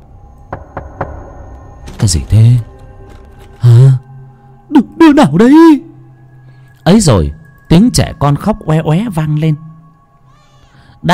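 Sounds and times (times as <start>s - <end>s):
knocking on a door: 0.5s - 1.5s
speech: 2.0s - 2.7s, 5.1s - 5.9s, 6.9s - 9.6s.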